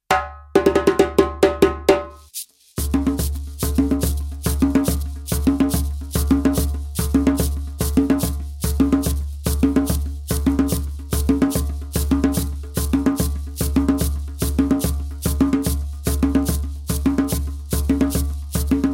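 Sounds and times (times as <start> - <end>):
djembe drumming: 0.0 - 18.9.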